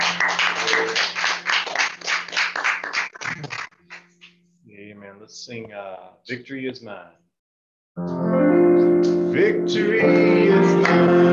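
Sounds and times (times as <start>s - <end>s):
many hands clapping: 0.0s - 4.4s
speech: 5.2s - 7.2s, 8.0s - 11.3s.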